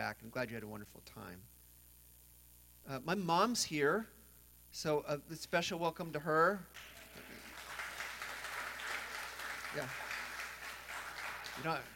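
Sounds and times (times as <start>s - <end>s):
speech: 0.0s - 1.6s, 2.8s - 7.4s, 9.7s - 10.0s, 11.6s - 11.9s
audience clapping: 6.7s - 11.9s.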